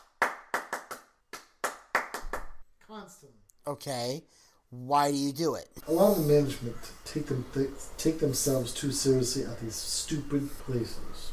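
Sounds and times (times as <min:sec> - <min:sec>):
bare hands clapping: 0:00.0 - 0:02.6
speech: 0:03.0 - 0:11.3.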